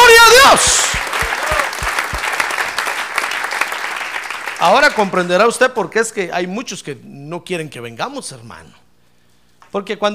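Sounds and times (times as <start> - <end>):
audience applauding: 0.6 - 5.5
speech: 4.6 - 8.8, 9.7 - 10.1.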